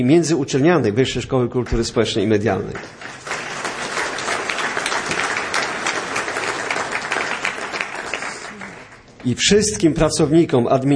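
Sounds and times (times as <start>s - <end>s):
speech: 0.0s - 3.2s, 9.2s - 10.9s
audience applause: 2.8s - 9.2s.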